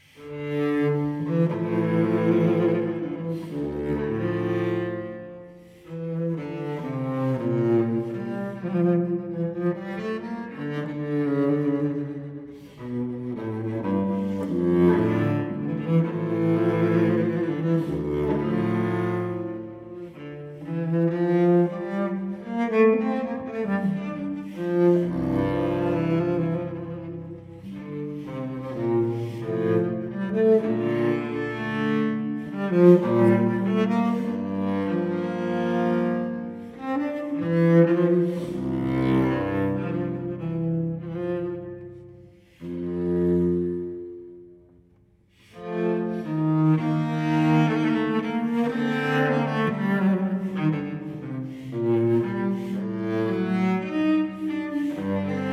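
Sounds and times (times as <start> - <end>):
solo cello suite sarabande: 0.0 - 55.5.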